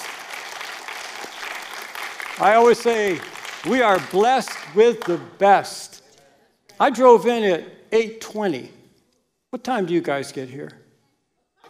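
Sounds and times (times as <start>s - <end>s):
audience clapping: 0.0s - 5.5s
speech: 2.4s - 6.0s, 6.8s - 8.8s, 9.5s - 10.8s.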